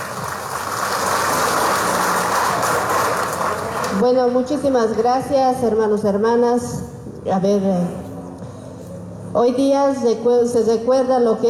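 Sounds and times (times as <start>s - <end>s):
loud applause: 0.0s - 4.0s
speech: 4.0s - 8.0s, 9.3s - 11.4s.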